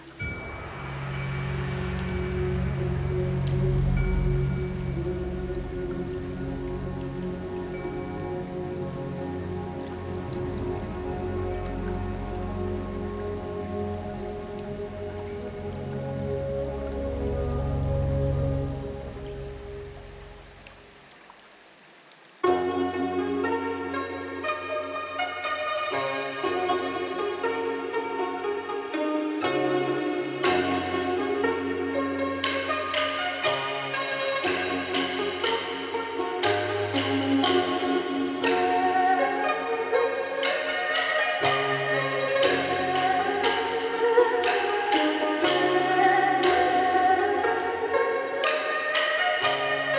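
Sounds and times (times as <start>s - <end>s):
Chinese meditation music: 0.0s - 21.2s, 22.4s - 49.9s.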